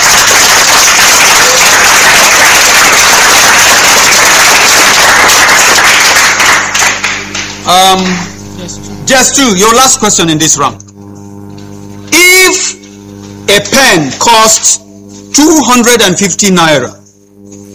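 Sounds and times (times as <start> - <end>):
room full of people clapping: 0.0 - 8.3
speech: 7.8 - 8.3, 9.1 - 10.8, 13.6 - 14.8, 15.4 - 17.0.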